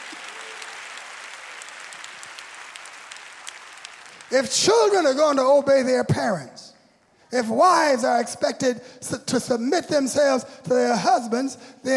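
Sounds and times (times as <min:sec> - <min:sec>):
crowd clapping: 0:00.0 - 0:05.1
speech: 0:04.3 - 0:06.7, 0:07.3 - 0:11.9.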